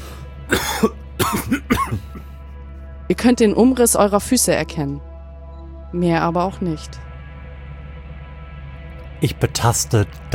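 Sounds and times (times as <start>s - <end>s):
coughing from dusty air: 0.5s - 2.3s
speech: 0.8s - 1.5s, 3.1s - 5.1s, 5.9s - 7.0s, 9.2s - 10.3s.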